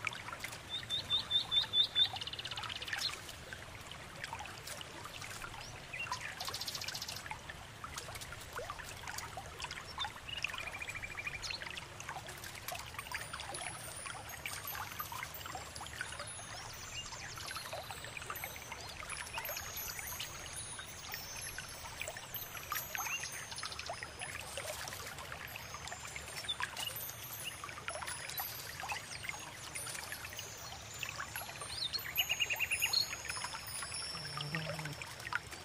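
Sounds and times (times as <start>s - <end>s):
calm river flowing: 0.0s - 35.6s.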